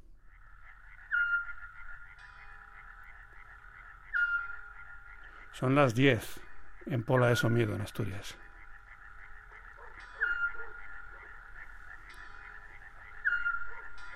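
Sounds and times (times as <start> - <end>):
Eurasian scops owl repeated whistle call: 1.1 - 1.7, 4.1 - 4.6, 9.8 - 11.1, 13.1 - 14.1
speech: 5.6 - 8.4.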